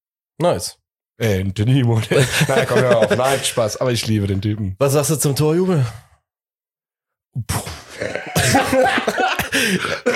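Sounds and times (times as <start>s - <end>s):
speech: 0.4s - 6.1s, 7.4s - 10.1s
laughter: 2.0s - 3.8s, 8.1s - 10.1s
person coughing and choking: 7.5s - 10.1s.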